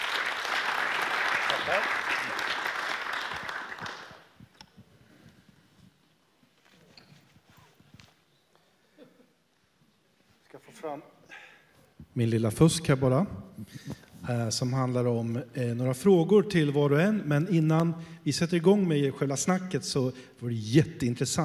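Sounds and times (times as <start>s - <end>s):
applause: 0.0s - 4.4s
speech: 1.7s - 2.6s, 12.2s - 21.4s.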